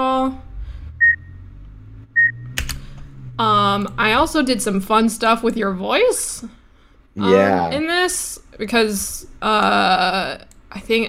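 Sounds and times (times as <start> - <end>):
low hum: 0.0 - 8.1
short electronic beeps: 1.0 - 1.4, 2.1 - 2.6
speech: 3.4 - 6.6, 7.2 - 11.0.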